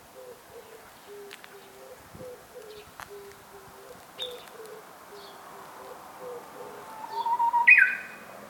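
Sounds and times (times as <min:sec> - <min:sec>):
Japanese bush warbler singing: 0:00.2 - 0:08.4.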